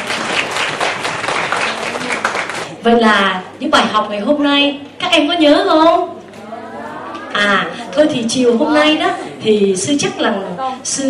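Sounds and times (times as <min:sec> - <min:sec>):
applause from an audience of young students at a teaching session: 0:00.0 - 0:02.8
speech: 0:02.8 - 0:06.1, 0:07.4 - 0:11.0.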